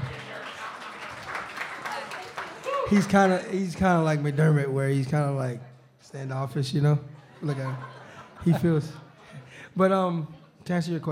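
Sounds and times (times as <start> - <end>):
audience applause: 0.0 - 3.7
speech: 2.9 - 9.0, 9.8 - 11.1
laughter: 7.1 - 9.6.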